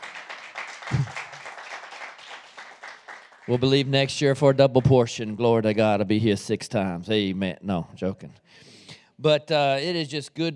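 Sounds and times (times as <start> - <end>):
faint applause from a church congregation: 0.0 - 3.9
speech: 3.5 - 10.5.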